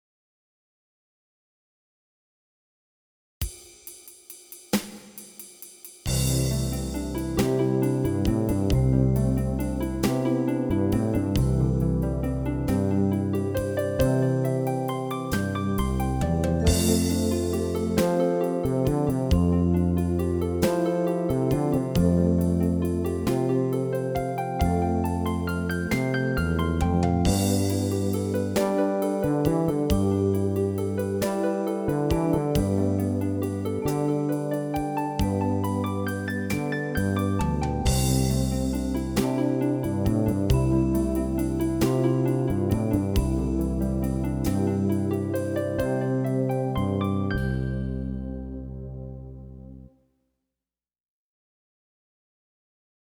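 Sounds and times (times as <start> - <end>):
primary chord study: 6.1 - 49.9.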